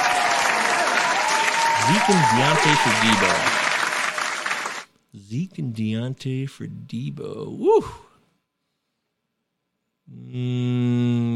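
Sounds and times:
applause: 0:00.0 - 0:04.9
speech: 0:01.9 - 0:03.6, 0:05.2 - 0:08.0, 0:10.3 - 0:10.6.

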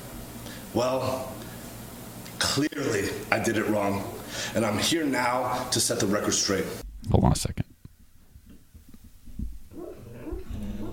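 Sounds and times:
speech: 0:00.7 - 0:01.4, 0:02.5 - 0:07.6
dog whimpering while dreaming in sleep: 0:09.7 - 0:10.9.

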